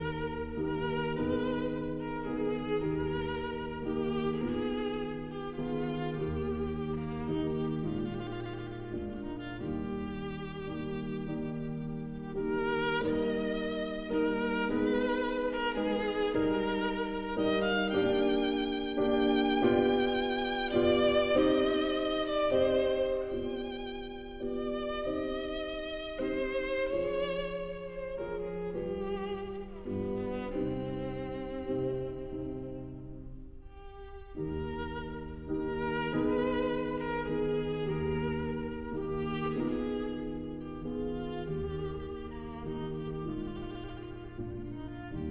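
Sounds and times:
violin and piano: 0:00.0 - 0:45.2.

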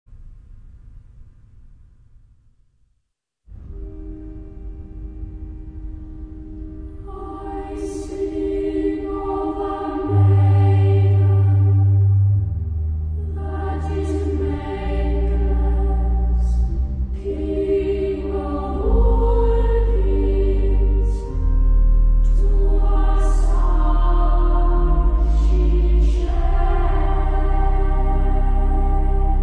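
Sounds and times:
cathedral choir singing: 0:06.6 - 0:29.4.

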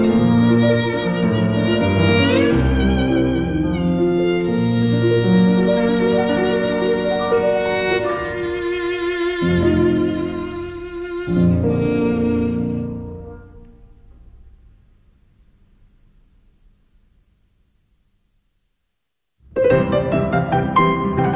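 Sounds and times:
piano: 0:00.0 - 0:14.9, 0:19.4 - 0:21.3.

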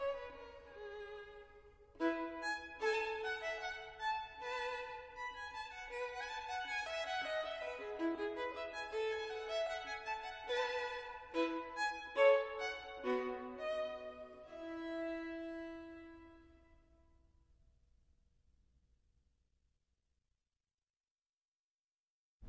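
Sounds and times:
violin: 0:00.0 - 0:16.9.

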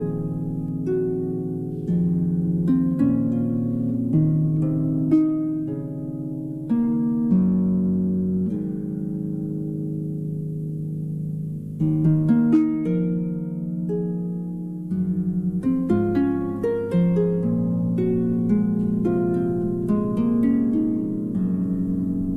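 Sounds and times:
harp concerto lullaby: 0:00.0 - 0:22.3.

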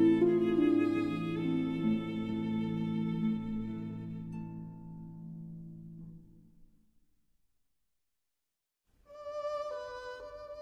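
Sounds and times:
berceuse for violin and harp: 0:00.0 - 0:05.3, 0:09.1 - 0:10.6.

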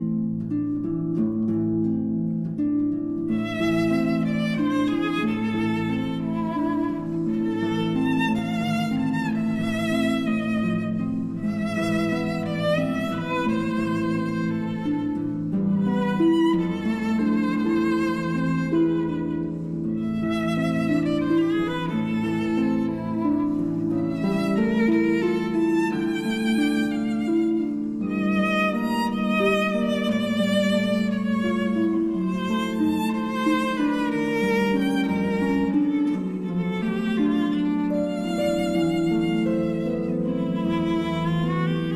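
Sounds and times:
berceuse for violin and harp: 0:00.0 - 0:41.9.

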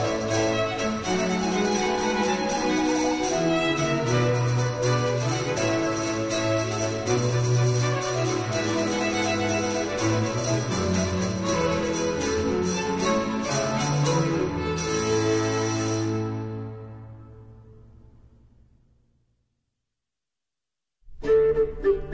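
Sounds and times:
cello solo: 0:00.0 - 0:16.9.

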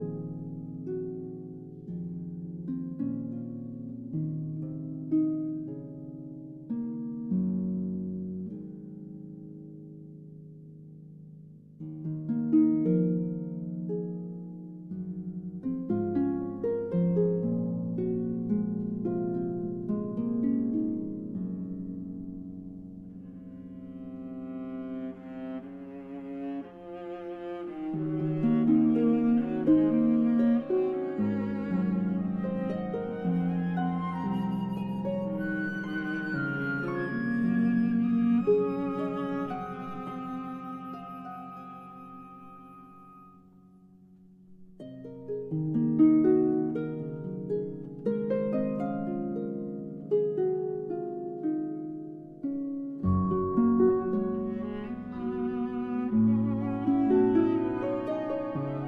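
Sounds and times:
harp concerto lullaby: 0:00.0 - 0:58.8.

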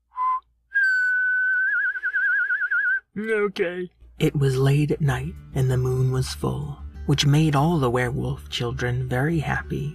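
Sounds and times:
person whistling: 0:00.0 - 0:03.1
speech: 0:03.2 - 0:09.9.

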